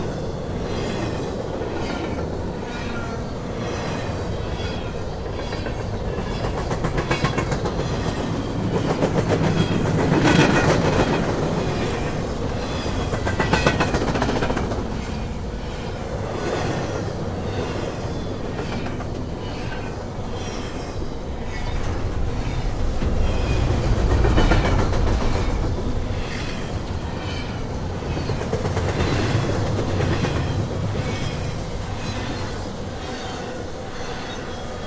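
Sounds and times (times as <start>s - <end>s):
long CN Rail freight train: 0.0s - 34.8s.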